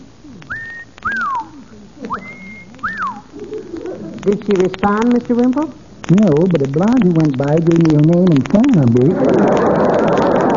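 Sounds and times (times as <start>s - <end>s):
person whistling an imitation of a warbler mating call: 0.5s - 1.5s, 2.1s - 3.3s
laughter: 2.0s - 4.6s, 8.9s - 10.5s
speech: 4.2s - 9.6s.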